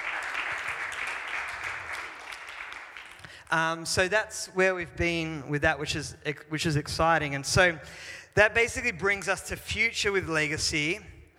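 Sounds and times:
audience cheering and applauding: 0:00.0 - 0:03.4
speech: 0:03.5 - 0:11.1.

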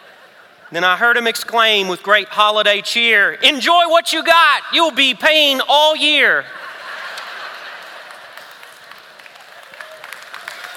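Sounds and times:
laughter: 0:00.0 - 0:00.9, 0:06.0 - 0:09.2
speech: 0:00.7 - 0:06.6
audience clapping: 0:07.1 - 0:10.7.

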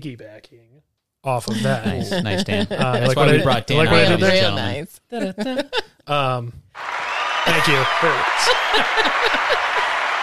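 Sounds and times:
speech: 0:00.0 - 0:09.9
laughter: 0:01.5 - 0:05.9, 0:07.5 - 0:10.2
applause: 0:06.8 - 0:10.2.

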